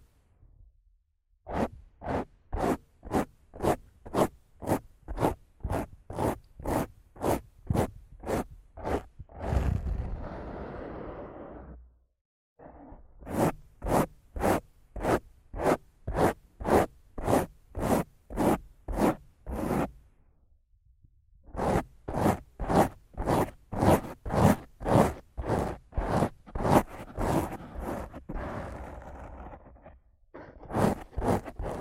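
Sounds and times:
softer smeared brushing: 1.5s - 9.1s, 13.3s - 20.0s, 21.6s - 29.5s, 30.7s - 31.8s
rough mic scratching in fast strokes: 1.5s - 11.8s, 12.8s - 20.0s, 21.5s - 31.8s.

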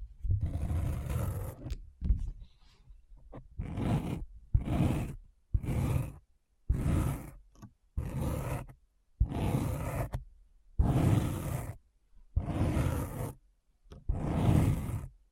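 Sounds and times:
deep rasping scratching strokes: 0.3s - 1.7s, 3.4s - 7.4s, 8.0s - 10.2s, 10.8s - 11.8s, 12.4s - 13.4s, 14.1s - 15.2s.

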